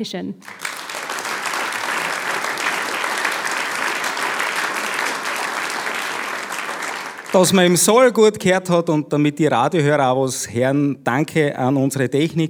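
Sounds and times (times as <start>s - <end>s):
speech: 0.0s - 0.6s, 7.3s - 12.4s
audience applause: 0.4s - 8.1s.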